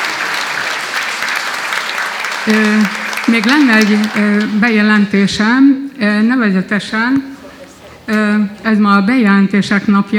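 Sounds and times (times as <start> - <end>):
audience applause: 0.0 - 4.7
speech: 2.4 - 7.3, 8.1 - 10.1.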